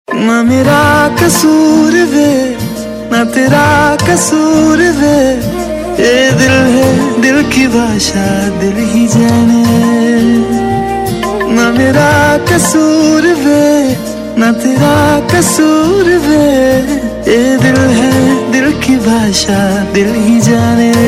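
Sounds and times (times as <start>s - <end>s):
love tune: 0.1s - 21.0s.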